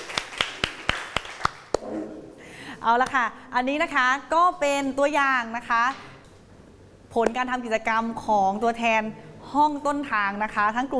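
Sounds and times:
classroom applause: 0:00.0 - 0:01.8
speech: 0:02.8 - 0:06.1, 0:07.1 - 0:10.9.

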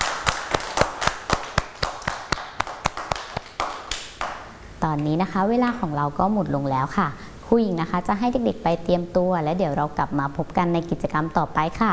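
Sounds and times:
children clapping for themselves: 0:00.0 - 0:04.5
speech: 0:04.8 - 0:11.9.

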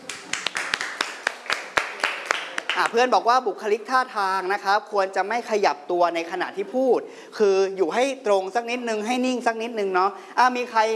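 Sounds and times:
classmates in a school class clapping for a student: 0:00.0 - 0:02.9
speech: 0:02.8 - 0:10.9.

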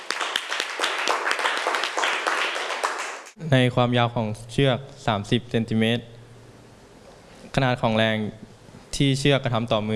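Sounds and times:
group clapping for a group's representative: 0:00.0 - 0:03.4
speech: 0:03.4 - 0:06.2, 0:07.6 - 0:09.9.

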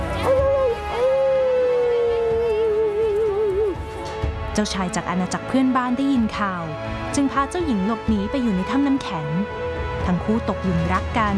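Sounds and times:
werewolf howl: 0:00.0 - 0:03.8
speech: 0:04.6 - 0:11.3.

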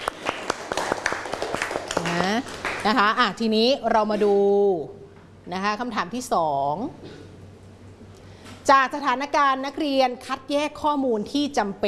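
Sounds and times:
students in a classroom clapping for a classmate: 0:00.0 - 0:03.1
speech: 0:02.8 - 0:07.2, 0:08.7 - 0:11.8.

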